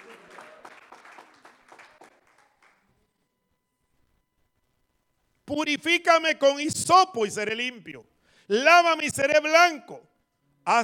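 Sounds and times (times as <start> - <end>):
audience applauding: 0.0 - 2.9
faint steady tone: 2.9 - 5.4
speech: 5.5 - 10.8.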